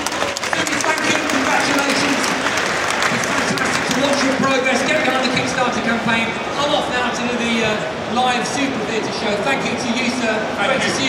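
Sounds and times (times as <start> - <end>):
round of applause: 0.0 - 5.6
speech: 6.0 - 11.0.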